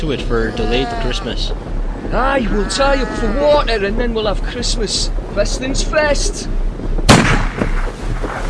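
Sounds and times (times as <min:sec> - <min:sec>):
speech: 0:00.0 - 0:06.9
gunshots fired at seals: 0:07.1 - 0:08.4.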